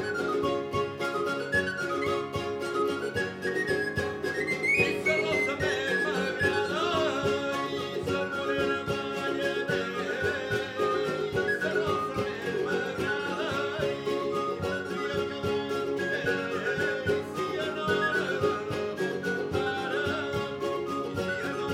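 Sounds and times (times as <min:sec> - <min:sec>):
jota played on flabiol: 0:00.0 - 0:21.7.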